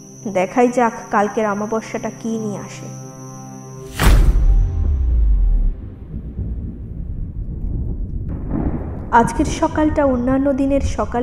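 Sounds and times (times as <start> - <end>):
speech: 0.2 - 3.0, 9.2 - 11.2
thunder crack and rumble from a storm over a jungle: 3.9 - 11.2.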